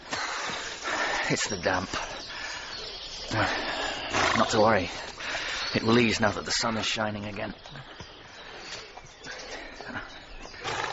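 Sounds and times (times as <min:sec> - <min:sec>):
hiss: 0:00.0 - 0:09.5
speech: 0:01.3 - 0:02.1, 0:03.3 - 0:03.8, 0:04.4 - 0:08.0
horse snorting: 0:03.7 - 0:04.7, 0:10.6 - 0:10.9.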